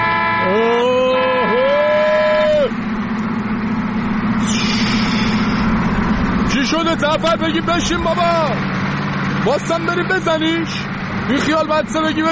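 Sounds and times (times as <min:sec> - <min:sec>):
car horn honking: 0:00.0 - 0:01.6
constant low engine rumble: 0:00.0 - 0:12.2
speech: 0:07.0 - 0:08.8, 0:09.4 - 0:12.2.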